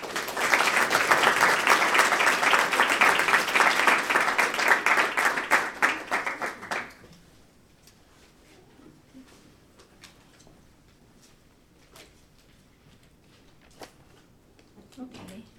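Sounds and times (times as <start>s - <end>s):
audience applause for a poet at a book celebration: 0.0s - 7.0s.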